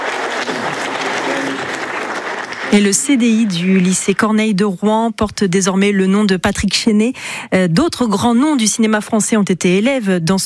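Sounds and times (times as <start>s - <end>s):
audience applause: 0.0s - 4.2s
speech: 2.7s - 10.4s.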